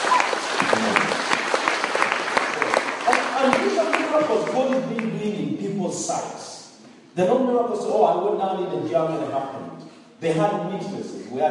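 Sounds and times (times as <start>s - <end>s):
audience clapping hands: 0.0s - 5.2s
speech: 4.2s - 6.5s, 7.2s - 11.5s.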